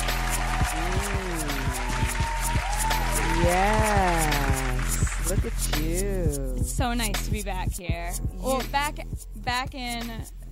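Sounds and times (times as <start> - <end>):
voices whooping and cheering: 0.0 - 5.3
crowd clapping: 0.0 - 6.0
speech: 3.4 - 4.1, 5.3 - 10.4.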